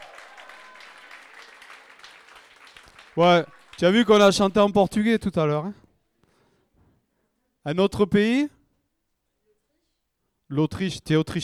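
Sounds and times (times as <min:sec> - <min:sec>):
audience applause during a roll call of countries: 0:00.0 - 0:04.6
speech: 0:03.2 - 0:05.8, 0:07.6 - 0:08.6, 0:10.5 - 0:11.4.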